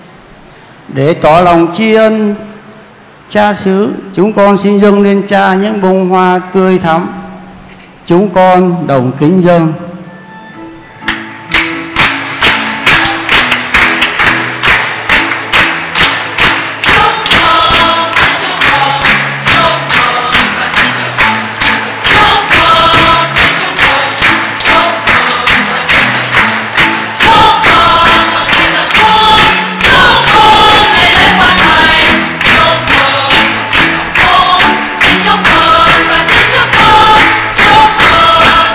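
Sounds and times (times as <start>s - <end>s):
speech: 0.9s - 2.5s, 3.3s - 7.2s, 8.1s - 9.8s
rhythmic clapping from many hands: 11.0s - 38.7s
crowd singing a melody: 16.2s - 38.7s.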